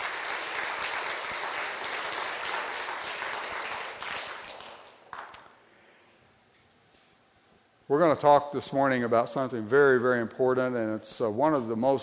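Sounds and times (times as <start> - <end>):
audience applauding: 0.0 - 5.4
speech: 7.9 - 12.0.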